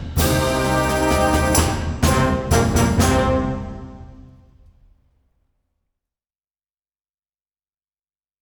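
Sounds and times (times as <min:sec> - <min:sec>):
groove music: 0:00.0 - 0:04.4.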